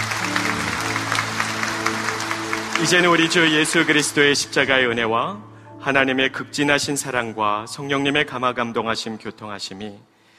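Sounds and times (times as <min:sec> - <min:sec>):
applause from a church congregation giving praise to God: 0:00.0 - 0:04.7
speech: 0:02.8 - 0:10.1.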